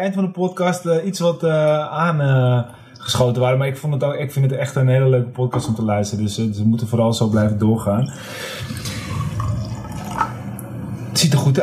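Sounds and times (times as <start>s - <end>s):
speech: 0.0s - 9.0s, 11.2s - 11.6s
wine pouring into a glass: 8.4s - 10.6s.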